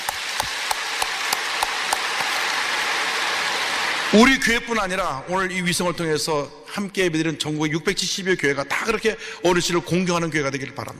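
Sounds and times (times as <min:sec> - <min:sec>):
audience applause: 0:00.0 - 0:04.5
speech: 0:04.1 - 0:10.9.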